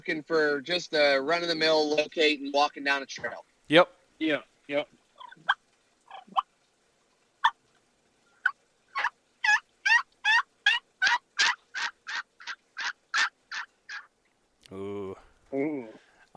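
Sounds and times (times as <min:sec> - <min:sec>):
speech: 0:00.0 - 0:05.5, 0:14.7 - 0:16.3
turkey call purring and yelping: 0:05.0 - 0:06.6, 0:07.4 - 0:14.1.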